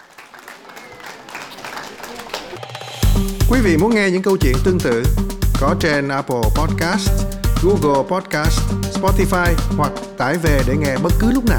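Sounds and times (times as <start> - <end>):
applause: 0.0 - 3.0
speech: 2.6 - 11.5.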